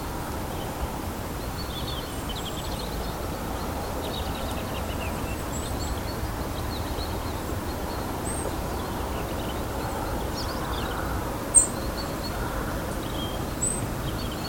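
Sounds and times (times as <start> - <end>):
birds: 0.0 - 14.4.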